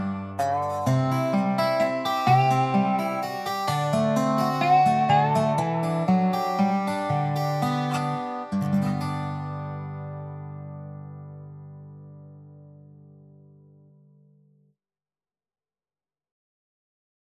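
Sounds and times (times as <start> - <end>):
dobro: 0.0 - 13.6.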